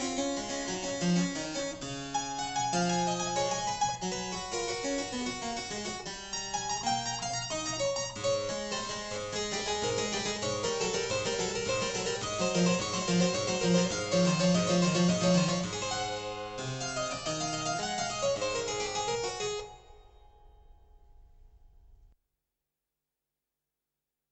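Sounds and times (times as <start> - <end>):
harpsichord: 0.0 - 20.5.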